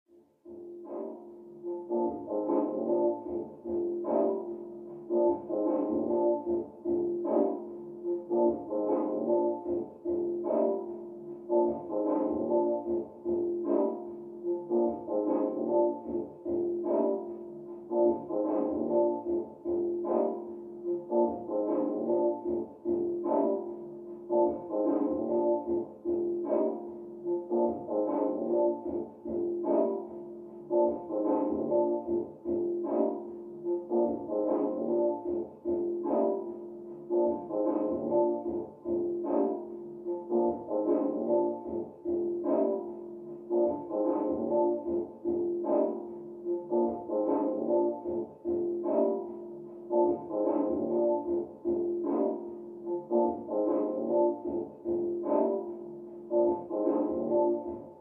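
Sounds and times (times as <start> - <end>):
hip hop beat: 0.1 - 57.9.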